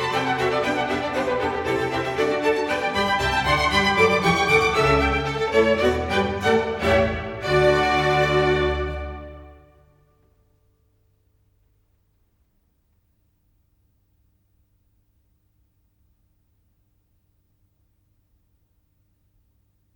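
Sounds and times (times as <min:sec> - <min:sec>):
concerto grosso in D minor allegro moderato: 0:00.0 - 0:09.9.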